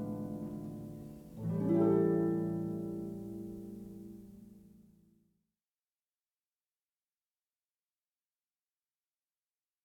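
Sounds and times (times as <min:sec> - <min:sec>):
harp: 0:00.0 - 0:05.1.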